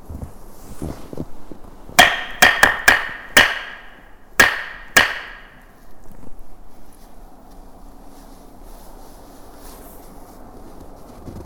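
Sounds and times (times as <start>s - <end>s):
low hum: 0.0s - 11.4s
knocking a rhythm: 2.0s - 5.6s.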